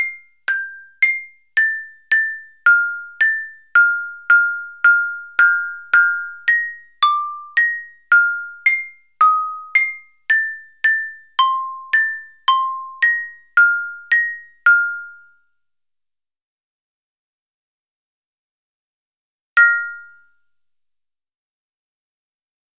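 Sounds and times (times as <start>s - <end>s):
triumphant xylophone melody: 0.0s - 15.3s, 19.6s - 20.3s.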